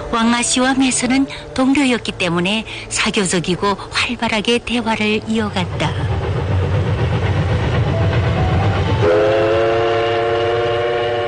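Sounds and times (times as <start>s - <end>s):
train running slowly on rails: 0.0s - 11.2s
speech: 0.1s - 6.2s
sustained multi-tone train horn: 8.9s - 11.2s.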